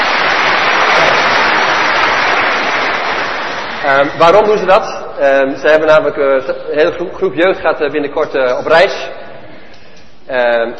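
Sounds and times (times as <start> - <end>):
applause: 0.0 - 3.9
speech: 3.9 - 9.2, 10.3 - 10.7.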